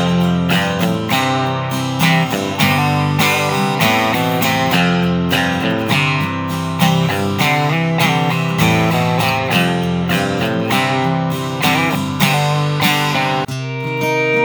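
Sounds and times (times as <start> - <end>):
guitars playing: 0.0 - 14.4.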